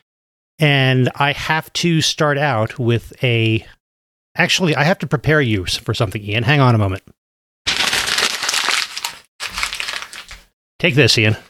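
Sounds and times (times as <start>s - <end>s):
speech: 0.6s - 3.8s, 4.4s - 7.2s, 10.8s - 11.4s
paper being crumpled into a ball: 7.7s - 10.5s.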